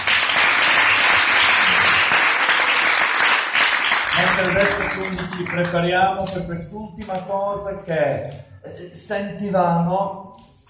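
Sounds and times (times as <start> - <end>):
audience applause: 0.0 - 5.9
speech: 4.4 - 10.5.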